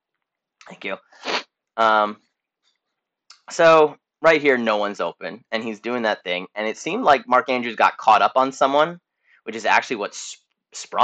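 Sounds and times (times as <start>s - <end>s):
speech: 0.6s - 2.2s, 3.5s - 11.0s
sneeze: 1.2s - 1.4s.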